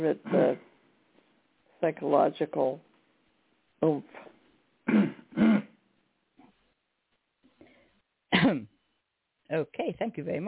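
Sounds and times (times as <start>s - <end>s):
speech: 0.0s - 0.7s, 1.8s - 2.9s, 3.8s - 4.3s, 8.5s - 8.7s, 9.5s - 10.4s
person coughing: 0.2s - 0.6s, 4.9s - 5.8s, 8.3s - 8.7s.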